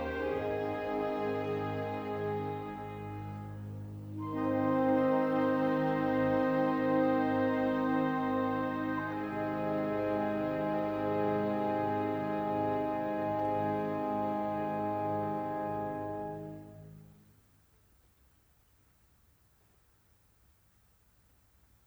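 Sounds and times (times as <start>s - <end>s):
horn with orchestra in a concerto: 0.0s - 17.2s.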